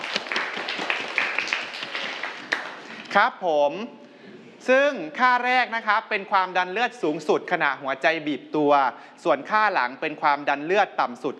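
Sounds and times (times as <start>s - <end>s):
students clapping: 0.0s - 3.2s
speech: 3.1s - 11.3s.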